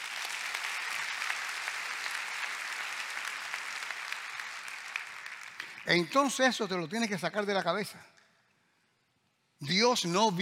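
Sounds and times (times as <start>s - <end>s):
audience applause: 0.0s - 6.5s
speech: 5.8s - 8.1s, 9.6s - 10.4s.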